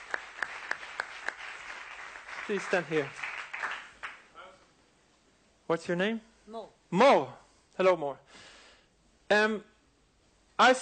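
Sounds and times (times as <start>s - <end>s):
audience applause: 0.0s - 4.3s
speech: 2.5s - 3.2s, 5.7s - 8.5s, 9.3s - 9.7s, 10.6s - 10.8s.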